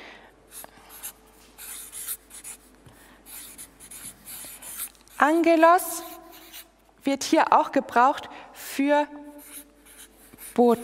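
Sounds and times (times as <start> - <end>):
writing during a Bible lesson: 0.5 - 7.0, 9.4 - 10.8
speech: 5.2 - 6.0, 7.1 - 9.2, 10.6 - 10.8.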